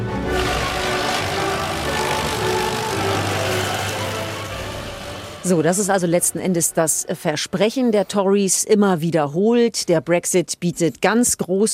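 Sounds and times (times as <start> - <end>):
paper shredder shredding documents: 0.2 - 6.0
speech: 5.5 - 11.7.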